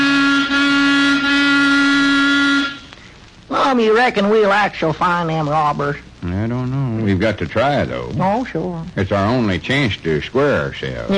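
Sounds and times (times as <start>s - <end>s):
car horn honking: 0.0s - 2.9s
speech: 3.7s - 11.1s.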